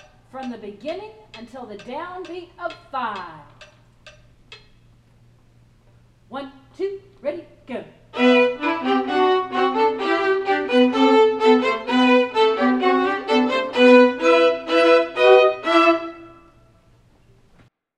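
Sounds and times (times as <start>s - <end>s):
first viola: 8.2s - 16.6s.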